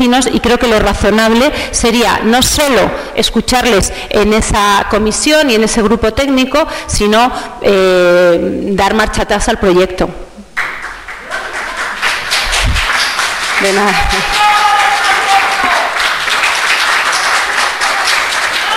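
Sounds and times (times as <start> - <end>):
speech: 0.0 - 10.3, 13.6 - 14.4
audience applause at district council meeting: 10.6 - 18.7.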